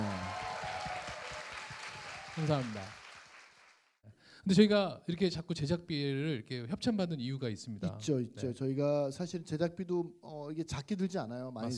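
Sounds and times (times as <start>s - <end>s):
audience applause: 0.0s - 3.9s
speech: 2.4s - 3.0s, 4.4s - 11.7s.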